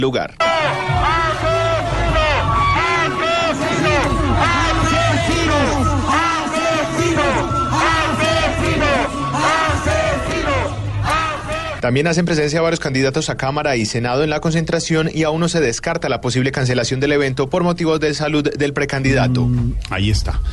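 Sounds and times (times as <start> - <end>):
speech: 0.0 - 0.9, 11.8 - 20.5
crowd shouting and jeering: 0.4 - 11.8
crowd whistling: 4.6 - 9.7.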